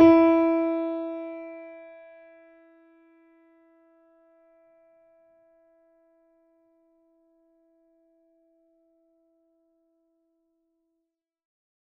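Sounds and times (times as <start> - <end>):
mini grand piano: 0.0 - 3.8.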